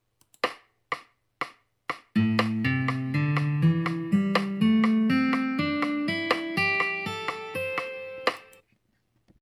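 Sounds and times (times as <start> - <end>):
guitar: 2.2 - 8.6.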